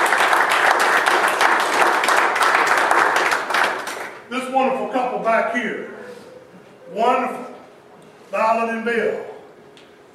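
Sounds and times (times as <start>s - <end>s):
audience applause: 0.0s - 4.2s
speech: 5.2s - 6.0s, 6.9s - 7.4s, 8.3s - 9.3s.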